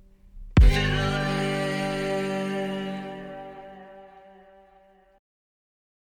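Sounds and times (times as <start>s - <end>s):
fiddle throw-away bowing on G: 0.6s - 4.9s.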